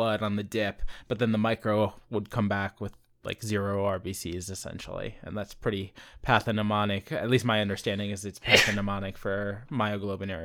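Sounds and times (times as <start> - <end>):
speech: 0.0 - 10.4
person sneezing: 8.4 - 9.0.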